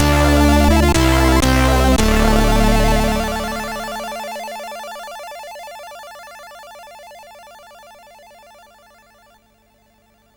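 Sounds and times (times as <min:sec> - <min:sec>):
metal music on a MOS6581R4 SID chip: 0:00.0 - 0:04.5.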